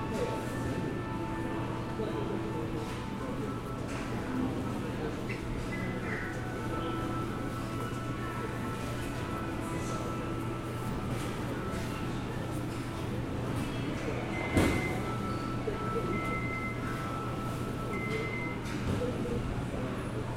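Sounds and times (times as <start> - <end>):
machinery hum at Songshan Airport: 0.0 - 20.3
beeping tones: 14.2 - 18.6.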